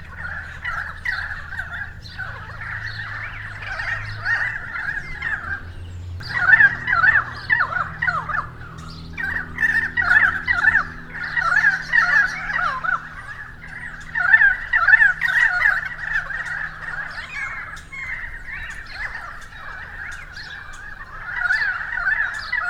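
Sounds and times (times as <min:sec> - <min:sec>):
currawongs giving loud warbling calls: 0:00.0 - 0:22.6.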